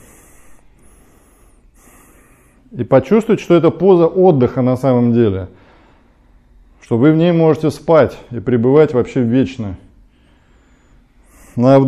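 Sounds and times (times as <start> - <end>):
ujjayi breathing in a yoga class: 0.0 - 2.7, 10.1 - 11.8
speech: 2.7 - 5.6, 6.8 - 9.8, 11.6 - 11.8.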